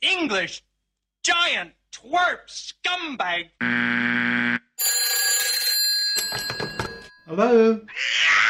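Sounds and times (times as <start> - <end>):
speech: 0.1 - 4.4, 7.3 - 8.4
telephone ringing with a bright electronic tone: 4.8 - 7.3.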